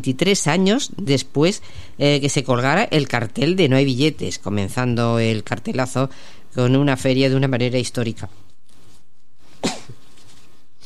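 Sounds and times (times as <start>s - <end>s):
speech: 0.0s - 8.4s
person with an allergy sneezing: 9.6s - 10.0s.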